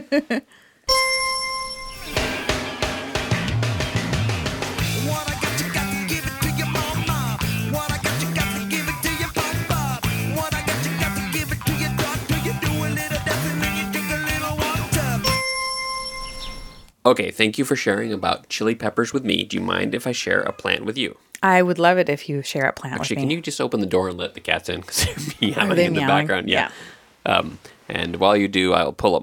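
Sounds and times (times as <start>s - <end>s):
laughter: 0.0s - 0.4s, 24.9s - 26.8s
speech: 0.1s - 1.2s, 17.0s - 29.2s
bell ding: 0.9s - 2.6s, 15.2s - 16.9s
busy music with gliding bass notes: 1.9s - 15.4s.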